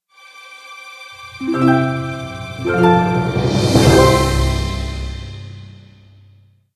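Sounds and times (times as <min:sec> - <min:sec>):
musical stinger: 0:00.7 - 0:06.3.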